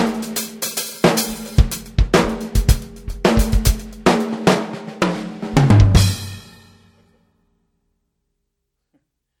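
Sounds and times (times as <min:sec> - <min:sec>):
Misti DB52 drum kit: 0:00.0 - 0:06.9.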